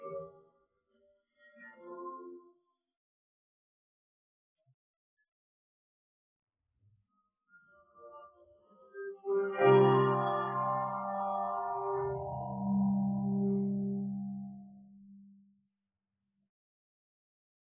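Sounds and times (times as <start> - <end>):
piano: 7.8 - 15.1.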